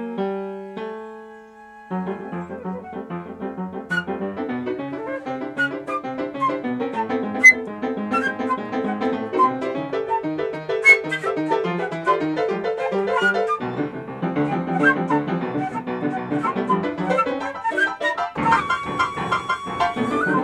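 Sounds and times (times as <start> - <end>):
piano: 0.0 - 20.4.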